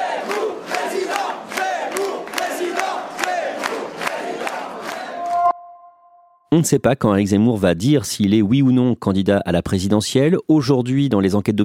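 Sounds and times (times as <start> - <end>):
large crowd chanting a political slogan in unison: 0.0 - 5.4
regular sharp claps: 0.0 - 5.4
speech: 6.6 - 11.6.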